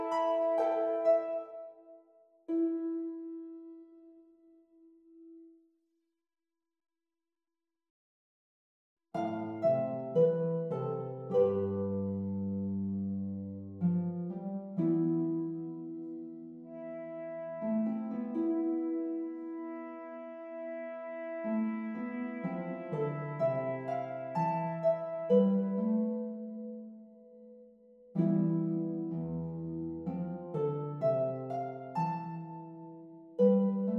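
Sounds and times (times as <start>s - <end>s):
horn: 0.0s - 1.9s, 16.6s - 26.0s
harp: 0.0s - 5.6s, 9.2s - 33.9s.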